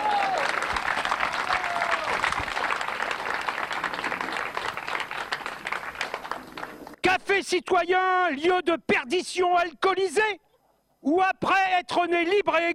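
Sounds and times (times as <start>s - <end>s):
audience applause: 0.0s - 7.0s
speech: 7.4s - 10.4s, 11.0s - 12.7s.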